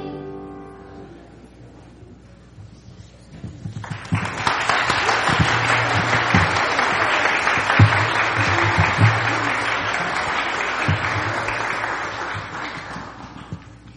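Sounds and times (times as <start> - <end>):
audience applause: 3.8 - 13.8.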